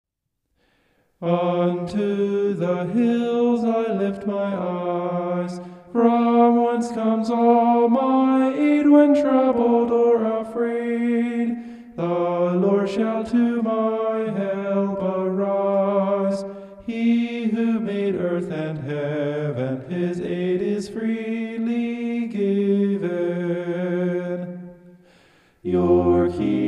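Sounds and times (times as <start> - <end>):
homophonic vocals: 1.2 - 24.8, 25.6 - 26.6.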